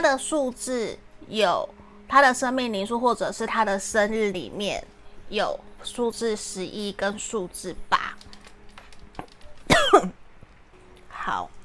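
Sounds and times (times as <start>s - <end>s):
speech: 0.0s - 8.2s, 11.2s - 11.6s
person coughing after choking during a tarot reading: 9.7s - 10.2s.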